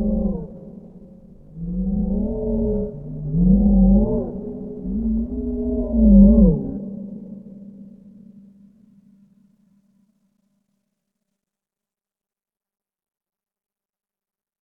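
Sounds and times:
whale moans: 0.0 - 7.8.

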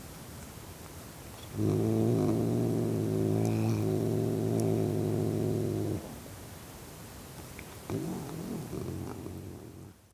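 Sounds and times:
cat growling: 1.4 - 6.2, 7.7 - 10.0.

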